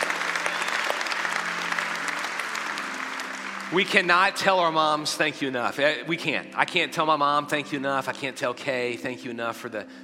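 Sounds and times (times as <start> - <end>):
audience applause: 0.0 - 5.1
speech: 3.7 - 10.0.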